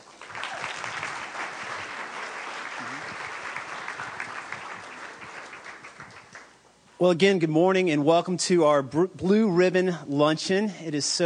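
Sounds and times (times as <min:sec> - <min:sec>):
audience applause welcoming a new speaker at a luncheon: 0:00.0 - 0:06.6
speech: 0:07.0 - 0:11.2.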